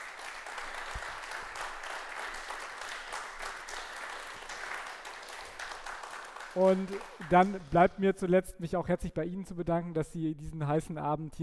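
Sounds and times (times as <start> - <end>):
audience applause: 0.0 - 8.0
speech: 6.6 - 11.4.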